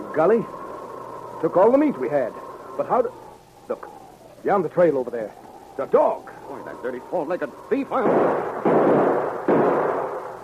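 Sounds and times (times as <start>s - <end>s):
speech: 0.2s - 0.6s, 1.4s - 9.0s
gunshots fired at a dog: 7.9s - 10.4s.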